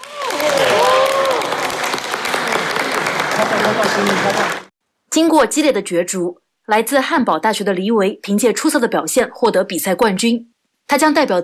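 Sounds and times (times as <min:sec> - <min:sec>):
large audience applause: 0:00.0 - 0:04.7
speech: 0:03.7 - 0:11.4.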